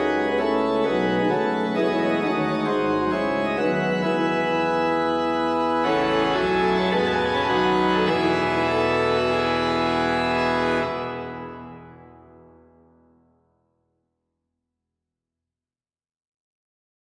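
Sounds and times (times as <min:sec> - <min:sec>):
organ playing: 0:00.0 - 0:12.7.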